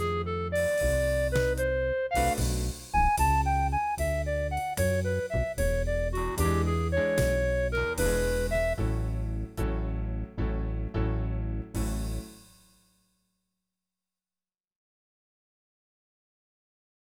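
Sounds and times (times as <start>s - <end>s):
mixolydian background track in triplets: 0.0s - 12.5s.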